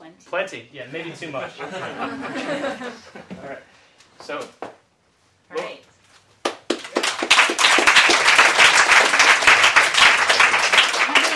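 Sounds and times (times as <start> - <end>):
speech: 0.2 - 4.7
laughter: 1.3 - 3.3
audience clapping: 6.4 - 11.3.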